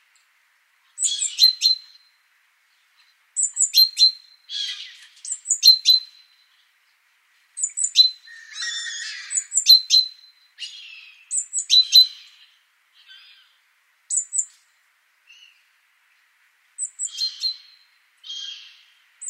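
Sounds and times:
great tit calls: 1.0s - 2.0s, 3.4s - 6.2s, 7.6s - 14.6s, 16.8s - 19.2s.

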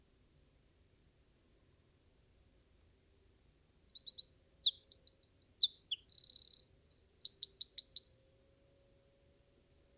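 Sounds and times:
Eurasian wren song of fast high tumbling notes and a ringing trill: 3.6s - 8.2s.

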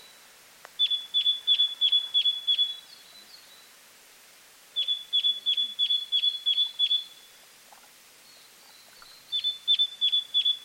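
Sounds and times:
great tit Parus major giving ringing chink calls: 0.8s - 3.6s, 4.8s - 7.3s, 8.3s - 10.6s.

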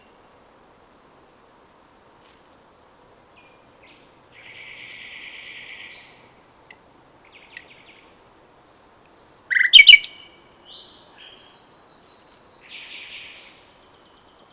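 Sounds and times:
common nightingale singing: 3.4s - 14.5s.

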